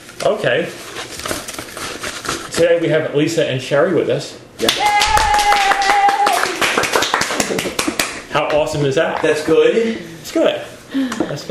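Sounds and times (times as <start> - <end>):
speech: 0.2 - 1.2, 2.6 - 4.9, 8.4 - 11.4
hands clapping: 4.6 - 9.4.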